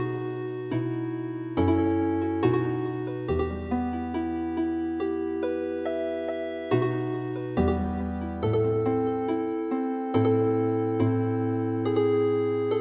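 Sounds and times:
traditional Chilean healing harp music in MIDI: 0.0 - 12.8.

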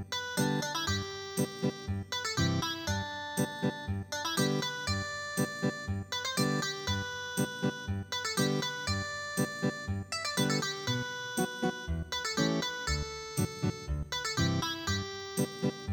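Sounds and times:
ethnic guitar music: 0.1 - 15.8.

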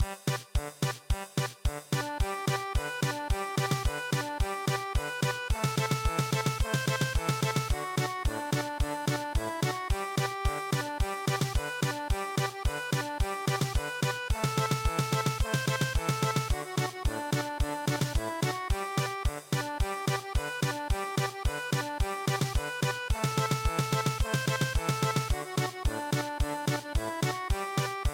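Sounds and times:
German polka music: 0.0 - 28.1.

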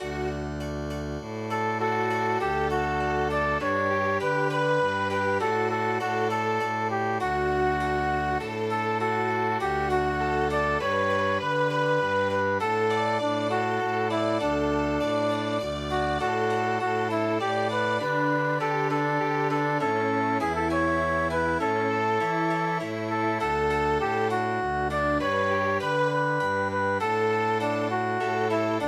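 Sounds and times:
hymn chamber music: 0.0 - 28.8.

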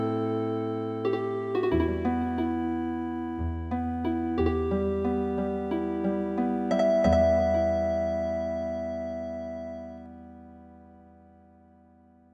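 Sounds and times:
traditional MIDI harp music: 1.0 - 10.8.

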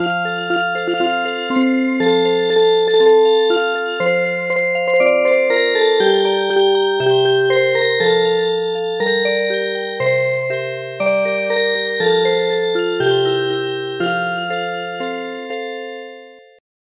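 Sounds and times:
music box: 0.0 - 16.2.

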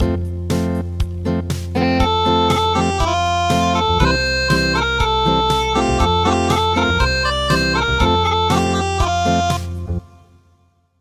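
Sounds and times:
acoustic music: 0.0 - 10.4.

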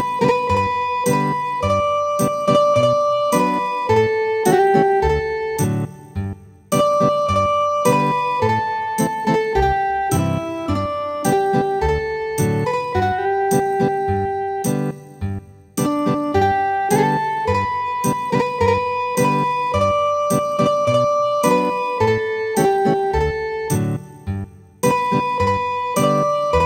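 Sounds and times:
traditional ethnic guitar MIDI: 0.0 - 26.6.

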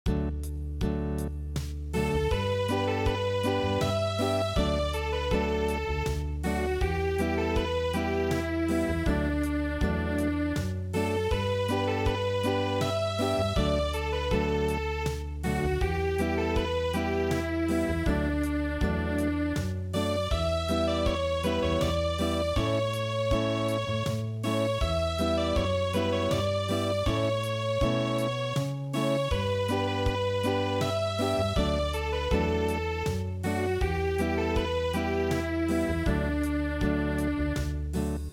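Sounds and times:
acoustic midi music: 0.1 - 38.3.

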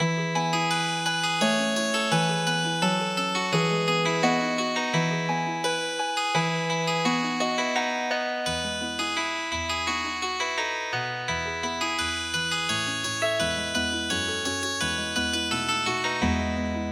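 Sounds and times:
traditional healing harp music: 0.0 - 16.9.

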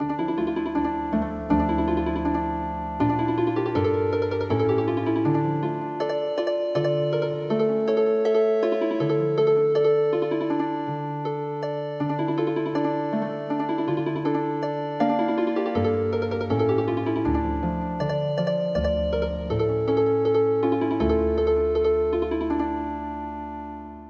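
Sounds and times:
healing harp music: 0.0 - 24.0.

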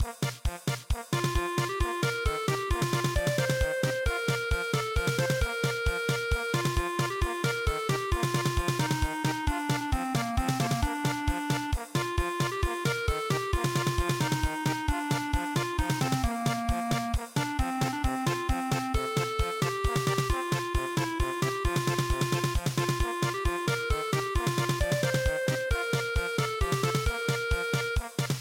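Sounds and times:
polka music: 0.0 - 28.4.

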